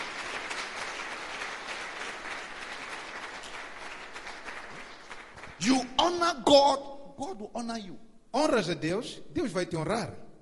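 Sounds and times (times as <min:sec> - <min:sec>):
crowd applause: 0:00.0 - 0:05.7
speech: 0:05.6 - 0:10.2.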